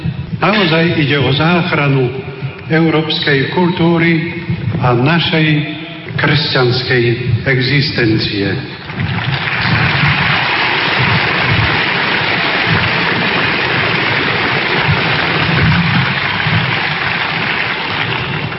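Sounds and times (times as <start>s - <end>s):
speech: 0.4s - 8.7s
audience applause: 8.8s - 18.5s.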